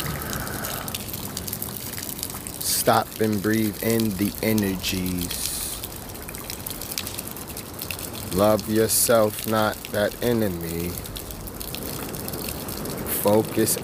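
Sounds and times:
water gushing: 0.0s - 13.8s
speech: 2.8s - 5.4s, 8.4s - 11.1s, 13.2s - 13.8s.

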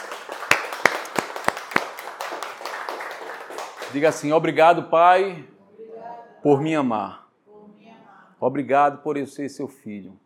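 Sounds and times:
audience applauding: 0.0s - 4.3s
speech: 3.9s - 5.5s, 6.4s - 7.2s, 8.4s - 10.2s.

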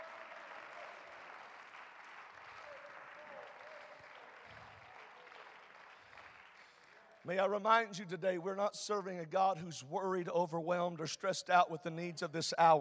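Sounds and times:
audience clapping hands: 0.0s - 7.6s
speech: 7.2s - 12.7s.

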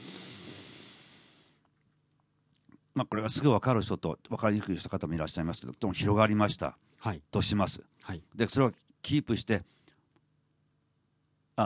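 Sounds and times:
deep inhalation through the nose during abdominal breathing voice-training exercise: 0.0s - 1.6s
speech: 3.0s - 9.8s.

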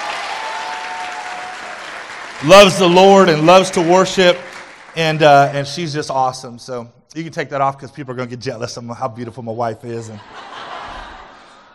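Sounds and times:
crowd applauding: 0.0s - 5.9s
speech: 2.4s - 10.4s
laughter: 10.0s - 11.7s.

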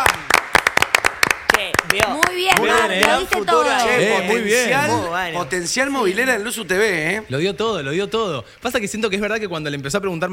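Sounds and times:
applause: 0.0s - 3.8s
speech: 1.9s - 10.3s.

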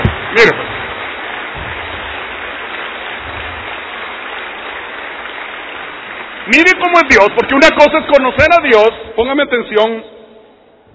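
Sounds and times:
audience applause: 0.0s - 7.8s
speech: 0.4s - 0.6s, 6.5s - 10.2s.

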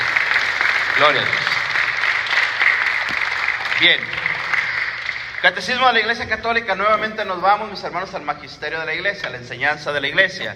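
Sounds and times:
audience applause: 0.0s - 6.2s
speech: 1.0s - 1.5s, 3.8s - 4.2s, 5.4s - 10.5s.

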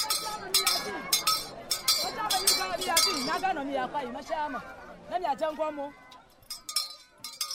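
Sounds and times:
handheld bell ringing: 0.0s - 3.5s, 6.4s - 7.5s
crowd chattering: 0.0s - 7.5s.

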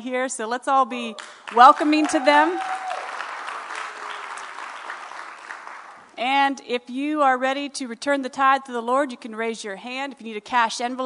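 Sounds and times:
speech: 0.0s - 2.9s, 6.2s - 11.0s
audience clapping in welcome: 1.2s - 6.2s.

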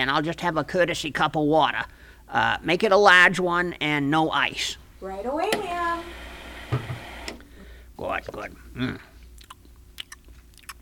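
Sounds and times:
speech: 0.0s - 6.2s, 8.0s - 9.1s
low steady hum: 0.0s - 10.8s
someone chewing clams: 9.2s - 10.8s.

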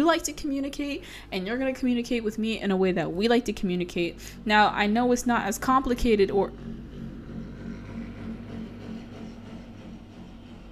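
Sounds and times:
speech: 0.0s - 6.8s
truck engine rumbling as it drives past: 4.2s - 10.6s.

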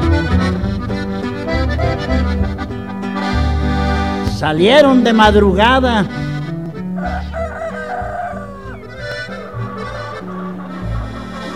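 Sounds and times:
band music: 0.0s - 11.5s
speech: 4.4s - 6.3s
rooster crowing: 7.0s - 10.8s.

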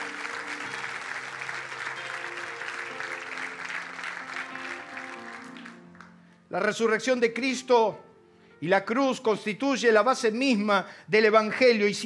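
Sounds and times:
audience applause: 0.0s - 6.1s
speech: 6.5s - 12.0s.

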